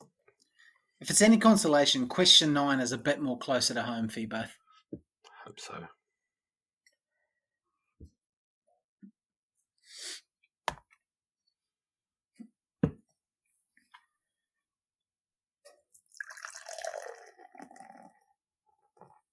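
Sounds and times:
speech: 1.0 - 5.0, 5.6 - 6.0
beer being poured into a glass: 15.8 - 18.4.

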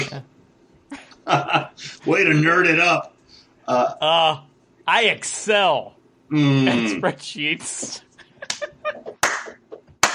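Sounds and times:
speech: 0.0 - 0.3, 1.3 - 3.1, 3.7 - 8.1
hand claps: 8.4 - 10.1.

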